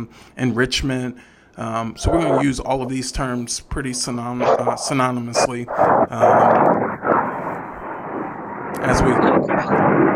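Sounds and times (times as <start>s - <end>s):
speech: 0.0s - 6.8s
airplanes flying overhead: 5.4s - 10.1s.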